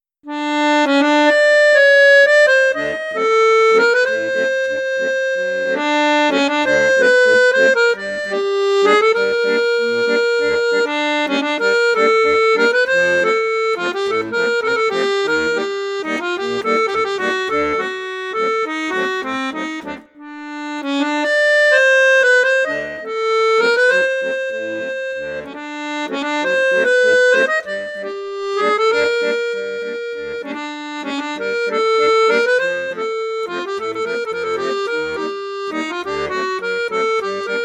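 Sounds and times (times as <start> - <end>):
accordion in bassoon register: 0.2 - 37.6.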